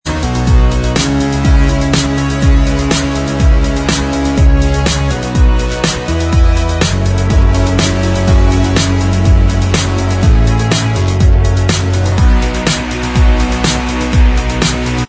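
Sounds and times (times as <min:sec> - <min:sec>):
instrumental music: 0:00.1 - 0:15.0.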